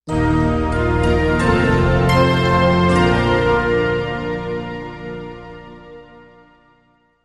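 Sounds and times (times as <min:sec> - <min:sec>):
musical logo chimes: 0:00.1 - 0:06.4.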